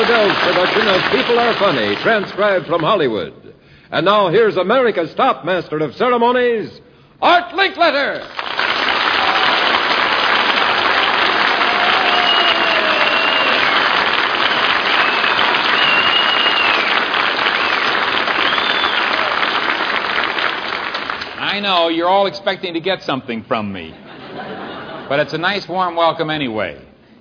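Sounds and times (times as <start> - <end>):
studio audience applauding: 0.0 - 3.0, 8.3 - 21.6
speech: 0.1 - 8.5, 21.6 - 26.9
laughter: 23.9 - 25.3.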